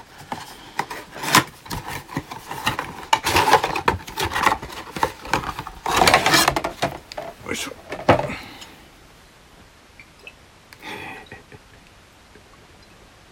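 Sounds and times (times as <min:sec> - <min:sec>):
gift box opening: 0:00.0 - 0:07.4.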